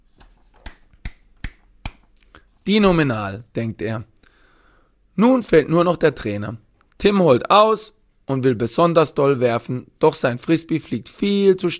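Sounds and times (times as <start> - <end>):
single person clapping hands in applause: 0.6 - 2.2
speech: 2.6 - 4.1, 5.2 - 11.7.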